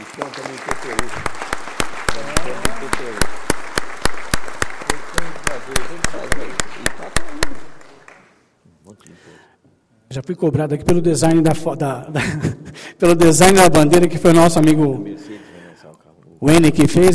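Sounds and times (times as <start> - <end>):
round of applause: 0.0 - 8.4
speech: 0.2 - 1.5, 2.1 - 3.5, 4.9 - 7.7, 9.0 - 9.5, 10.1 - 15.4, 16.4 - 17.1.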